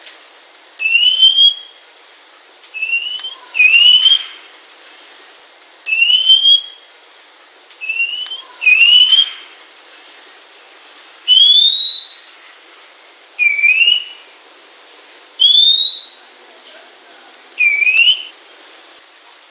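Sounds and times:
Oriental magpie-robin calls: 0:00.8 - 0:01.8, 0:02.8 - 0:04.4, 0:05.9 - 0:06.9, 0:07.8 - 0:09.5, 0:11.3 - 0:12.3, 0:13.4 - 0:14.2, 0:15.4 - 0:16.4, 0:17.6 - 0:18.4.

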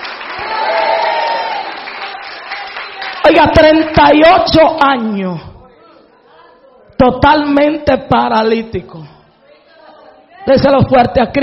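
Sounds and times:
church congregation clapping: 0:00.0 - 0:04.2
speech: 0:03.4 - 0:05.5, 0:07.0 - 0:09.1, 0:10.4 - 0:11.4.

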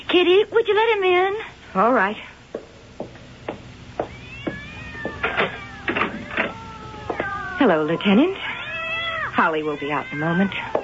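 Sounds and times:
speech: 0:00.1 - 0:02.3, 0:07.6 - 0:08.5, 0:09.4 - 0:10.8
cats meowing: 0:04.0 - 0:10.8.

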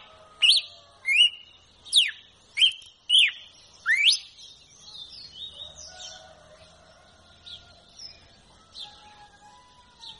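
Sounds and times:
red-cowled cardinal whistled song: 0:00.4 - 0:05.0.

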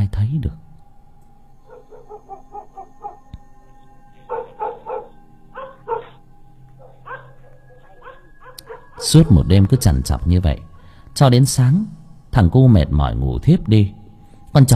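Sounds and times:
speech: 0:00.2 - 0:00.7, 0:09.0 - 0:14.0, 0:14.6 - 0:14.7
chained dog barking loudly: 0:01.7 - 0:03.2, 0:04.3 - 0:06.2, 0:06.8 - 0:09.0.

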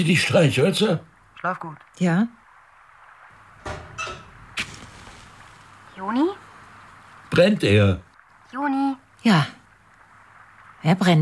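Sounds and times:
speech: 0:00.0 - 0:02.4, 0:06.0 - 0:06.4, 0:07.4 - 0:09.6, 0:10.8 - 0:11.2
low steady background: 0:00.0 - 0:11.2
metal oven door flap knocking and clanking as it is opened: 0:03.6 - 0:04.5.

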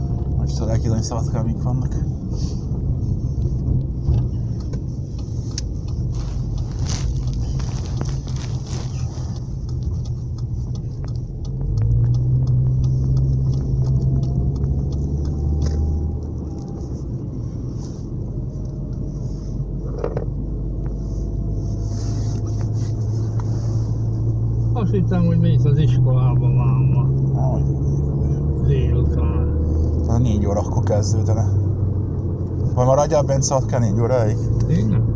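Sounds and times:
road traffic with many cars passing: 0:00.0 - 0:35.1
speech: 0:00.5 - 0:02.7, 0:31.0 - 0:31.5, 0:32.8 - 0:34.9.

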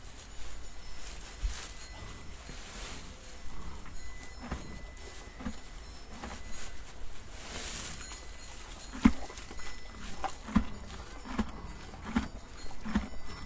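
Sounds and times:
horse hooves clopping at a walk: 0:03.1 - 0:13.4.

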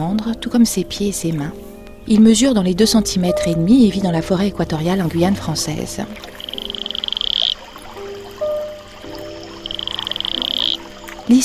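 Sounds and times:
speech: 0:00.0 - 0:06.3, 0:11.3 - 0:11.4
Atelopus franciscus toad pulsed trill: 0:06.2 - 0:11.4.

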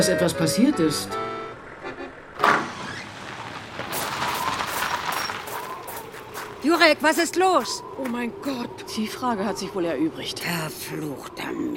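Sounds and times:
speech: 0:00.0 - 0:01.4, 0:06.6 - 0:11.7
car engine and road noise while towing another car: 0:00.0 - 0:08.0
sharp clunk: 0:02.4 - 0:03.0.

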